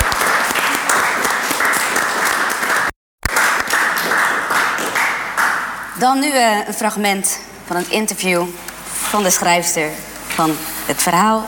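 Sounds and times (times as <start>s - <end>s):
audience applause: 0.0s - 5.6s
speech: 6.0s - 11.4s.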